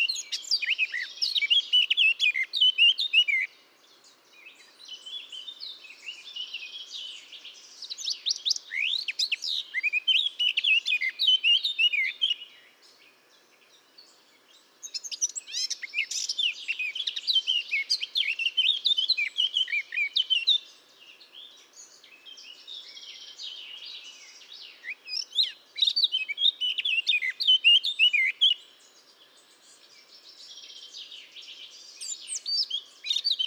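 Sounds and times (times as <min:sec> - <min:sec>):
Eurasian blackcap singing: 0:00.0 - 0:03.5, 0:07.9 - 0:12.5, 0:14.8 - 0:20.6, 0:24.6 - 0:28.6, 0:31.8 - 0:33.4.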